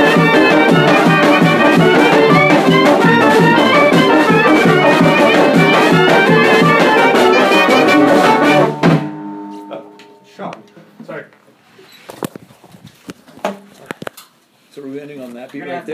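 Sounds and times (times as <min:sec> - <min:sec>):
Bulgarian folk music medley: 0:00.0 - 0:10.7.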